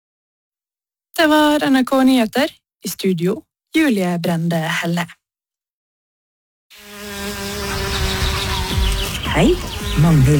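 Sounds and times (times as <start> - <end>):
speech: 1.2 - 5.2, 9.4 - 10.3
bumblebee buzzing: 6.7 - 10.3.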